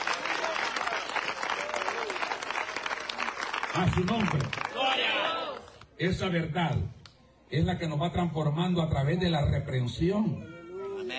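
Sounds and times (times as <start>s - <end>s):
audience applause: 0.0s - 5.6s
speech: 3.7s - 5.4s, 6.0s - 11.1s.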